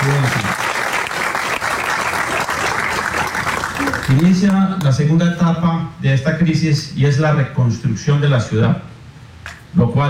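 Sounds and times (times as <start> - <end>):
audience applause: 0.0 - 4.6
speech: 4.1 - 8.9, 9.7 - 10.0.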